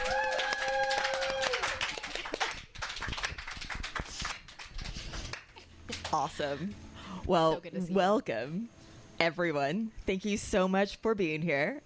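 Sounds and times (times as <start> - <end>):
brief high whoop or cheer: 0.0 - 2.2
audience clapping irregularly: 0.0 - 6.3
speech: 6.1 - 11.8.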